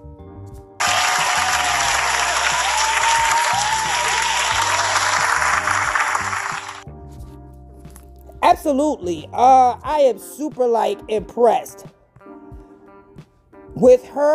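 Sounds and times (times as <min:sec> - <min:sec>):
crowd applause: 0:00.8 - 0:06.8
faint voices and whoops: 0:00.8 - 0:06.8
speech: 0:08.6 - 0:11.9, 0:13.8 - 0:14.3.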